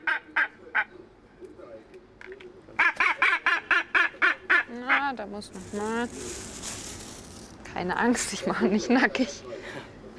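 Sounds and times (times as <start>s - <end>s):
northern gannet honking squawks while a feather is taken: 2.8s - 5.2s
speech: 5.1s - 6.8s, 7.8s - 9.9s.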